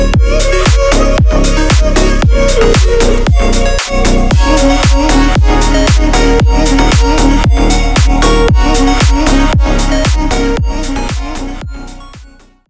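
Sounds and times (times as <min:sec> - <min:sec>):
slap house music: 0:00.0 - 0:12.6.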